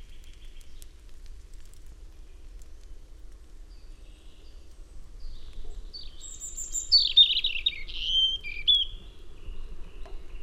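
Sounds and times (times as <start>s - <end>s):
European robin song: 5.9s - 10.4s.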